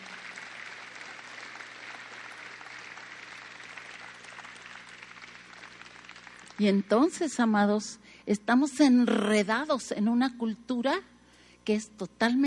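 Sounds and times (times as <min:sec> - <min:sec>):
audience applause: 0:00.0 - 0:06.8
speech: 0:06.6 - 0:11.1, 0:11.7 - 0:12.4.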